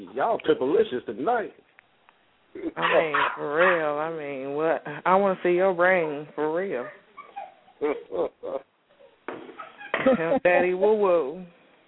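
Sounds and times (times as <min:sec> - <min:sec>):
speech: 0:00.0 - 0:01.7, 0:02.5 - 0:07.0, 0:07.8 - 0:08.7, 0:09.3 - 0:11.6
dog barking: 0:02.8 - 0:03.9.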